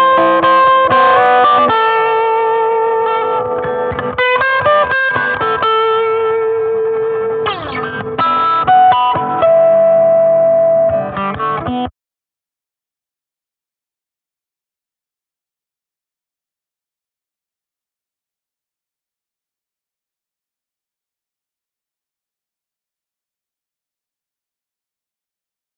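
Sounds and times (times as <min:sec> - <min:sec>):
two guitars improvising: 0:00.0 - 0:11.9.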